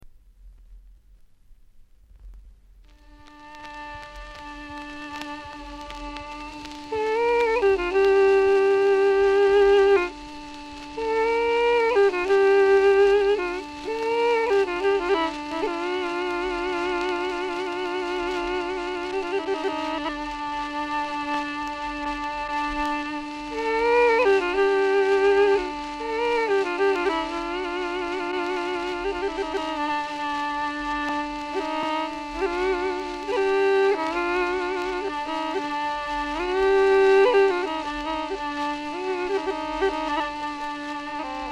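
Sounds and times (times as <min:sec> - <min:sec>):
duduk melody: 0:02.9 - 0:41.5.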